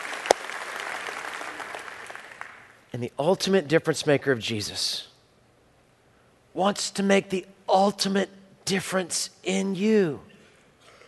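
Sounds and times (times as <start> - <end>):
church congregation applause during an Easter service: 0.0 - 2.8
speech: 2.9 - 5.1, 6.6 - 10.3.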